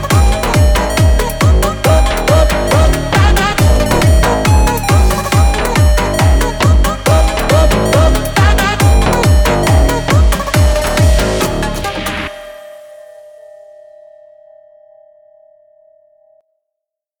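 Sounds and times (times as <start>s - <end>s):
sped-up Brazilian gym phonk music: 0.0s - 12.7s.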